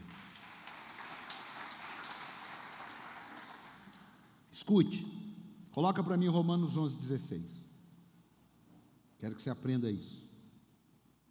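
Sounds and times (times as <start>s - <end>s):
audience applause: 0.0s - 4.2s
speech: 4.6s - 5.2s, 5.8s - 7.6s, 9.2s - 10.3s.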